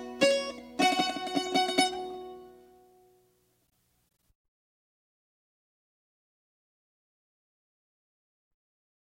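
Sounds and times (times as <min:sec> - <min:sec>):
mandolin improvisation: 0:00.0 - 0:03.3.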